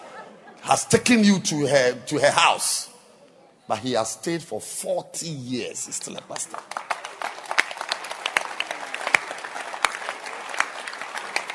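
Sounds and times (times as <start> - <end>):
laughter: 0.0 - 2.3
speech: 0.7 - 2.9, 3.7 - 6.9
crowd applauding: 6.2 - 11.5.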